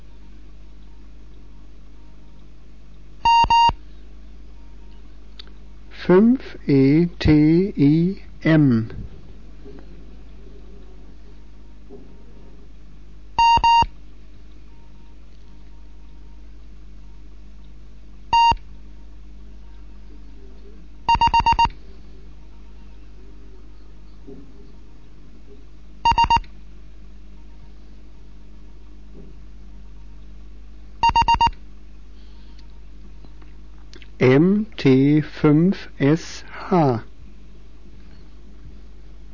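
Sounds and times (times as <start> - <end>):
constant low hum: 0.0 - 39.3
Morse code beeps: 3.2 - 3.8, 13.4 - 13.9, 18.3 - 18.6, 21.1 - 21.7, 26.0 - 26.4, 31.0 - 31.5
speech: 6.1 - 9.1.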